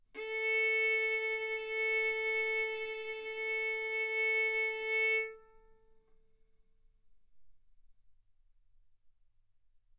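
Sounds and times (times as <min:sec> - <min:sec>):
violin arco on A string: 0:00.2 - 0:05.8.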